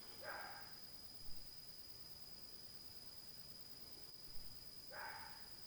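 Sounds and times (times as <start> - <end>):
dog barking faintly at night: 0.2 - 0.8, 4.9 - 5.5.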